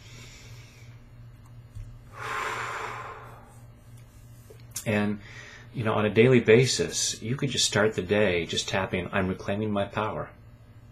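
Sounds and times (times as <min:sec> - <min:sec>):
low steady hum: 0:00.0 - 0:05.7
deep breath during a guided self-empowerment tapping exercise: 0:02.1 - 0:03.7, 0:05.2 - 0:05.7
speech: 0:04.8 - 0:10.4.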